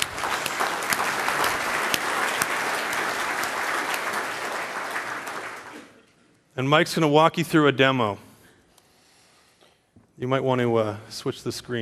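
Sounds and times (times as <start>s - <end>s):
audience applause welcoming a speaker onto the stage: 0.0s - 6.0s
speech: 6.6s - 8.2s, 10.2s - 11.8s.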